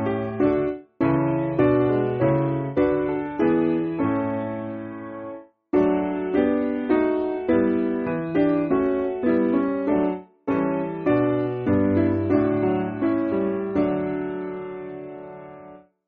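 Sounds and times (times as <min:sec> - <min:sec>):
piano backing music for churches: 0:00.0 - 0:15.8.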